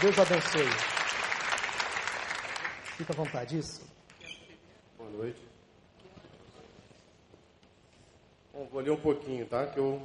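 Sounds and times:
speech: 0.0 - 1.2, 3.0 - 4.0, 5.0 - 5.5, 8.6 - 10.0
audience applause: 0.0 - 3.5.

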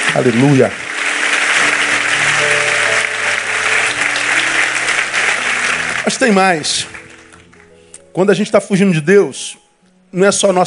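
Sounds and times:
audience applause: 0.0 - 7.8
speech: 0.1 - 0.8, 6.1 - 7.0, 8.2 - 10.6.

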